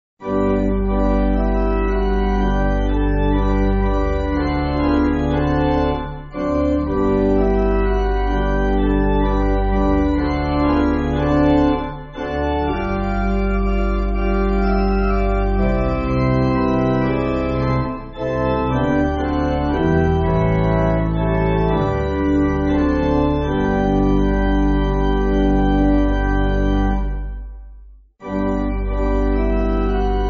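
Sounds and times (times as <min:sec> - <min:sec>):
pipe organ music backing: 0:00.2 - 0:27.6, 0:28.2 - 0:30.2.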